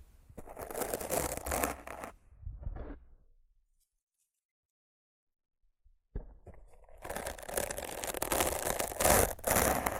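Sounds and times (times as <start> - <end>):
rough scratching and brushing across a microphone: 0.3 - 3.2, 6.5 - 9.9.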